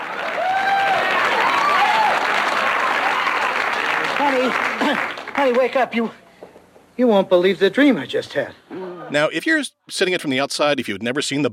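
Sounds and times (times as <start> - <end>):
studio audience applause: 0.0 - 5.8
speech: 4.3 - 6.2, 7.0 - 11.5.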